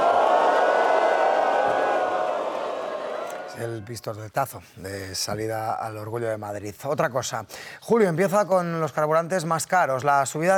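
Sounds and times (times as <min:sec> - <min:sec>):
large crowd booing: 0:00.0 - 0:03.6
speech: 0:03.6 - 0:10.5.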